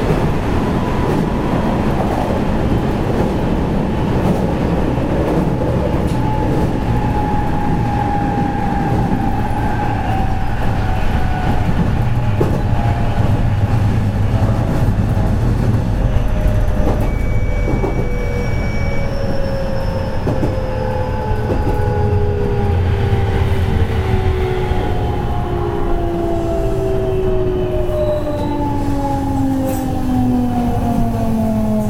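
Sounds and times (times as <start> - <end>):
207 series electric train rumble on the JR Kobe Line: 0.0 - 31.8
brief higher tone: 16.0 - 20.2.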